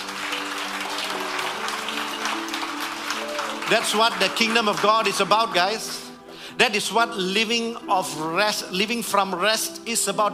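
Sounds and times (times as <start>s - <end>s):
audience clapping: 0.0s - 6.9s
speech: 3.7s - 6.0s, 6.6s - 10.3s.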